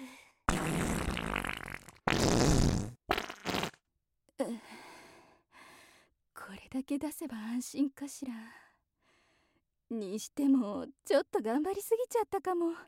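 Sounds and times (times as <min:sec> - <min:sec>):
fart: 0:00.5 - 0:03.8
speech: 0:06.8 - 0:08.6, 0:09.9 - 0:12.8.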